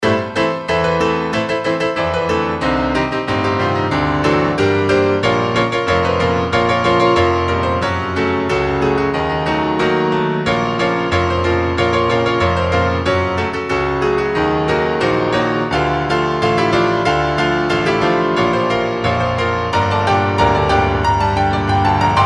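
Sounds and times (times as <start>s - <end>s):
piano cover: 0.0s - 22.2s.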